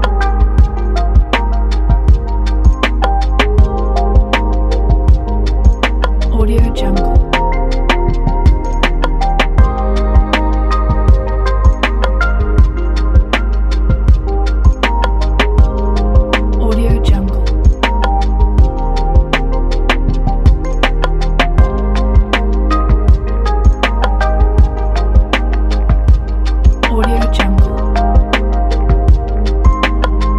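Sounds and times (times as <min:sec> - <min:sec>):
abstract chill electronic music: 0:00.0 - 0:30.3.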